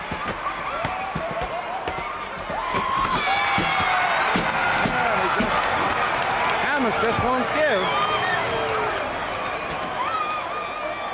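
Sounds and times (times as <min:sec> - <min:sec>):
thuds and slaps from the ring: 0:00.0 - 0:05.7
wrestling arena crowd cheering and booing: 0:00.0 - 0:11.1.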